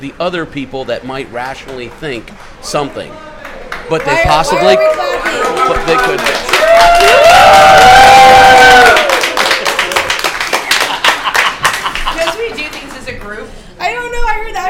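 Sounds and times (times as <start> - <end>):
speech: 0.0 - 3.3, 3.9 - 9.1
audience clapping: 1.4 - 13.4
audience cheering: 3.8 - 12.1
laughter: 9.8 - 12.8.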